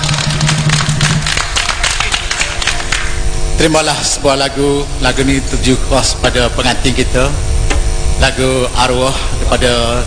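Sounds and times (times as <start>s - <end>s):
crowd applause: 0.0s - 3.3s
low steady hum: 0.0s - 10.0s
speech: 3.6s - 7.6s, 8.2s - 10.0s.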